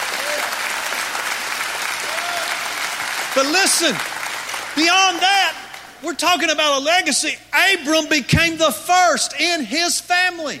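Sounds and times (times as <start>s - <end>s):
audience clapping: 0.0s - 6.0s
speech: 3.4s - 4.1s, 4.8s - 10.5s.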